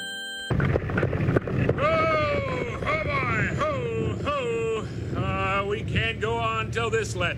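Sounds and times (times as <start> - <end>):
storm wind roaring: 0.5 - 7.3
speech: 5.6 - 7.3.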